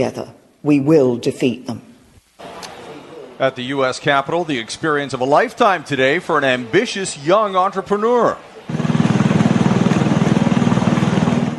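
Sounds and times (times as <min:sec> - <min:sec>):
speech: 0:00.0 - 0:01.9, 0:03.4 - 0:08.8
lawn mower mowing the White House lawn: 0:08.7 - 0:11.5.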